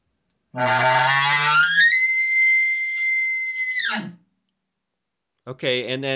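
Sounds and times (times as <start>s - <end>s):
speech: 0.5s - 1.2s, 5.5s - 6.1s
person imitating an elk bugle, growl rising to high whistle: 0.6s - 4.1s.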